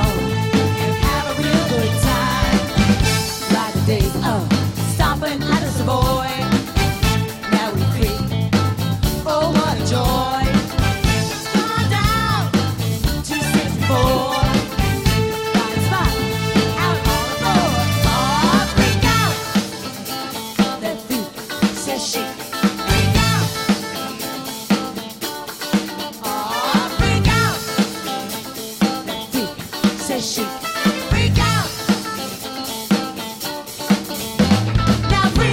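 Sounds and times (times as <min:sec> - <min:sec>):
disco band playing: 0:00.0 - 0:35.5.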